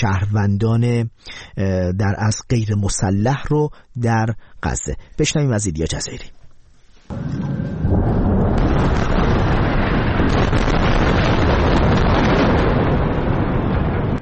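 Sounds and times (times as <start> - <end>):
speech: 0.0 - 6.4
bombing explosions in the Gaza Strip: 7.1 - 14.1.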